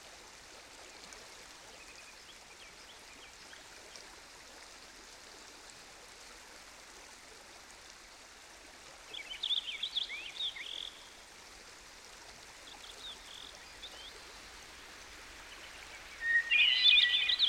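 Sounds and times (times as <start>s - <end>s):
stream flowing: 0.0s - 17.4s
Purple Finch singing: 16.2s - 17.4s.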